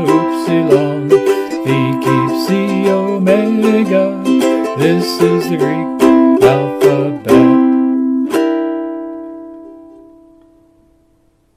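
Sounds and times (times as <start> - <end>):
Greek alphabet song: 0.0 - 9.2.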